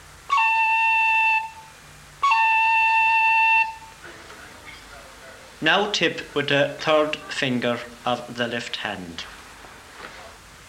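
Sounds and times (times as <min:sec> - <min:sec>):
short roll on the note A on a blown fingered instrument: 0:00.0 - 0:04.0
speech: 0:05.6 - 0:09.4.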